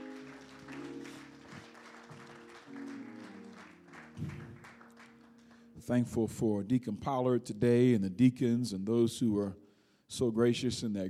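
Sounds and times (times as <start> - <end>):
church congregation applauding after a prayer: 0.0 - 5.9
speech: 5.9 - 11.0.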